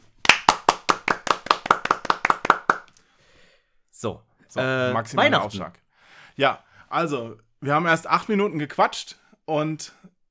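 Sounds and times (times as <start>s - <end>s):
spontaneous applause, hand clapping: 0.0s - 3.0s
speech: 4.0s - 5.8s, 6.4s - 10.1s.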